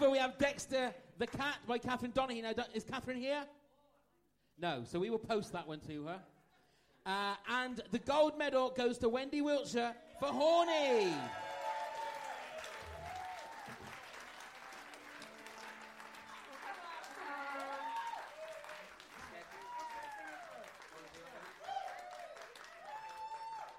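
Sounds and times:
speech: 0.0s - 3.6s, 4.6s - 6.3s, 7.0s - 11.5s
audience applauding: 11.0s - 23.7s.

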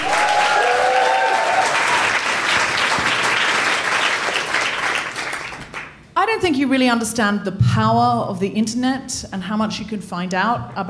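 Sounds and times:
audience applause at a live comedy show: 0.0s - 6.0s
speech: 6.4s - 10.8s.

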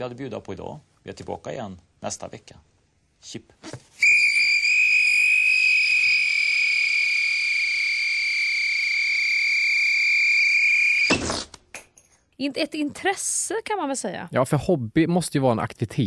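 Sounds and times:
speech: 0.0s - 3.9s, 12.4s - 16.0s
balloon deflating through a whistle: 4.0s - 11.6s.

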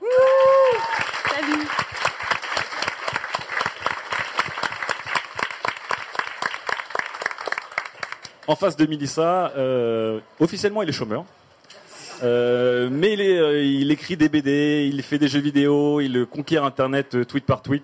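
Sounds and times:
whoops and cheers: 0.0s - 1.7s
audience applause: 0.0s - 8.5s
speech: 8.5s - 11.4s, 12.2s - 17.8s.

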